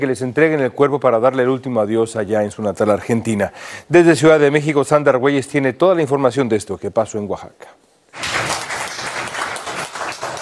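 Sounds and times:
speech: 0.0s - 8.6s
doctors and nurses applauding: 8.1s - 10.4s.

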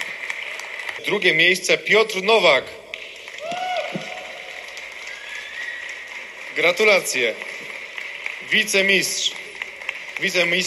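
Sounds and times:
audience applause at a coffee tasting championship award ceremony: 0.0s - 1.6s, 2.8s - 10.6s
speech: 1.0s - 2.8s, 6.6s - 7.6s, 8.5s - 9.4s, 10.2s - 10.6s.

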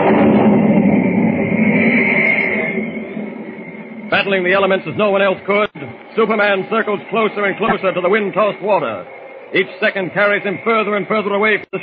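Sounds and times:
crashing boom of thunder: 0.0s - 5.4s
speech: 4.2s - 11.8s.

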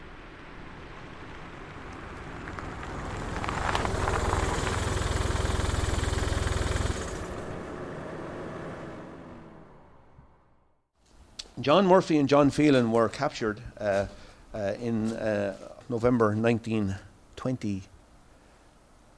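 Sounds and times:
car engine running: 1.2s - 10.5s
speech: 11.6s - 17.9s.

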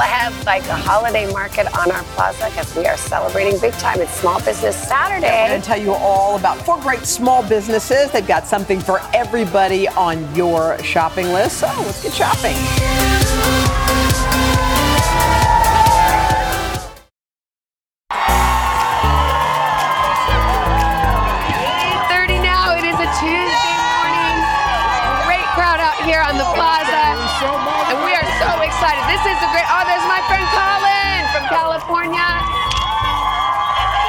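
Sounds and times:
speech: 0.0s - 14.3s
crowd cheering and whooping: 12.2s - 17.0s, 18.1s - 34.0s
excited screams: 12.8s - 16.9s, 18.1s - 34.0s.

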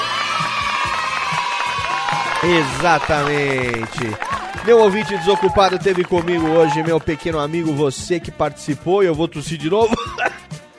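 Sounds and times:
crowd of children shouting and cheering: 0.0s - 7.5s
speech: 2.4s - 10.3s.

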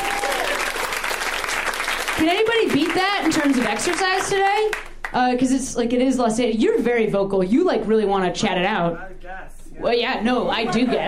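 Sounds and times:
audience applause: 0.0s - 4.9s
speech: 2.2s - 11.0s
laughter: 10.2s - 11.0s.

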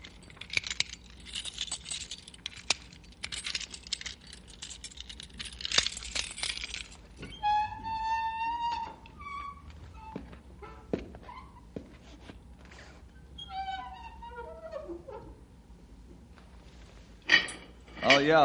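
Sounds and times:
keys jangling in a jail cell lock: 0.0s - 7.6s
jail cell door creaking open: 7.2s - 11.6s, 13.4s - 15.4s.

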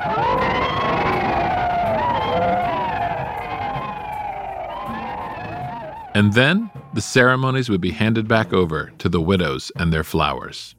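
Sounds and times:
rebel yell war whoop: 0.0s - 7.4s
speech: 6.2s - 10.7s.

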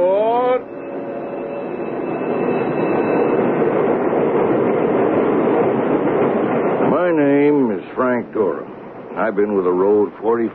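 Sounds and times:
thin high whine of electric commuter train: 0.0s - 5.8s
electric commuter train stopping at platform: 0.0s - 10.5s
speech: 8.3s - 10.5s.

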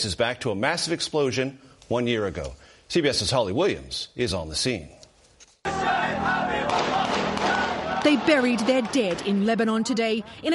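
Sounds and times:
speech: 0.0s - 5.0s, 8.0s - 10.5s
crowd roaring and shouting: 5.7s - 10.5s
celebratory gunfire fired into the air: 6.7s - 8.2s.

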